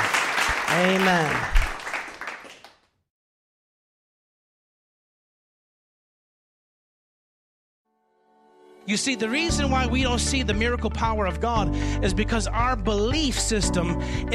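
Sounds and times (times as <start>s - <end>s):
audience hand clapping: 0.0s - 3.0s
speech: 0.7s - 1.6s, 8.9s - 14.3s.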